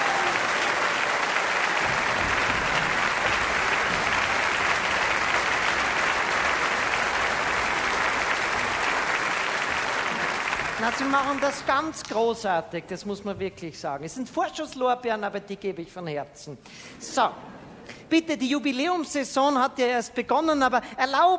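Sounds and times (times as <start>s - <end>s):
audience applause: 0.0s - 12.0s
speech: 10.8s - 21.3s.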